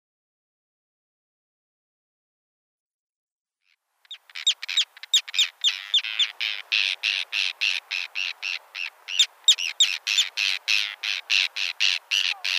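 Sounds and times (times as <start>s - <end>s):
Arctic tern calling: 3.6s - 12.5s.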